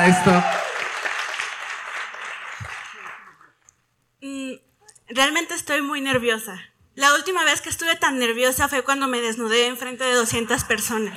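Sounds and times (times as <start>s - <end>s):
speech: 0.0s - 0.6s, 5.2s - 11.1s
audience applause: 0.0s - 3.6s.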